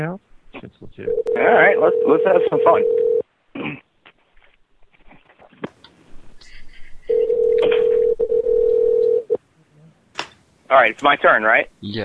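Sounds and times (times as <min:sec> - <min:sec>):
speech: 0:00.0 - 0:03.0, 0:03.6 - 0:03.8, 0:10.7 - 0:12.0
telephone dialing beeps: 0:01.1 - 0:03.2, 0:07.1 - 0:09.3
throat clearing: 0:03.5 - 0:03.9.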